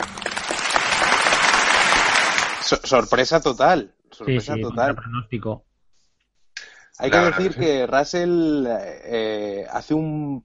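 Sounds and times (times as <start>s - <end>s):
applause after an award announcement: 0.0s - 2.8s
speech: 2.7s - 5.7s, 7.0s - 10.4s
laughter: 4.3s - 5.2s, 7.0s - 9.8s.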